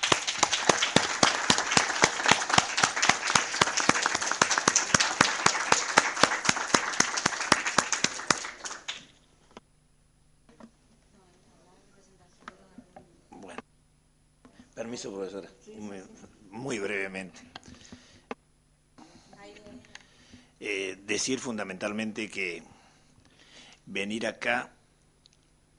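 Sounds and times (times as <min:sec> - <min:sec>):
audience applause: 0:00.0 - 0:09.1
speech: 0:15.0 - 0:18.0, 0:20.6 - 0:22.7, 0:23.9 - 0:24.8.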